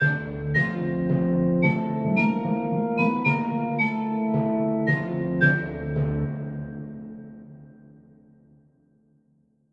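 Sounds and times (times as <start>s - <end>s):
game intro music: 0.0s - 7.3s.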